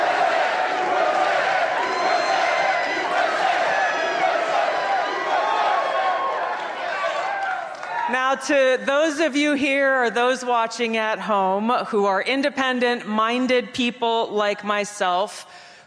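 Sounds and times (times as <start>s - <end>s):
loud crowd cheering at rally: 0.0s - 8.2s
speech: 8.2s - 15.7s.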